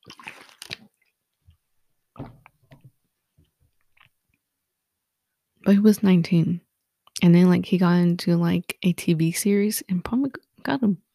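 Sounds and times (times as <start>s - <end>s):
person drinking water: 0.0s - 1.6s, 3.8s - 4.2s
speech: 5.7s - 11.0s.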